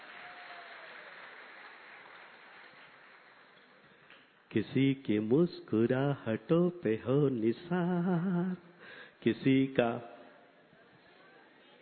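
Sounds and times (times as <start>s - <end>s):
audience applause: 0.0s - 4.0s
speech: 4.5s - 10.1s.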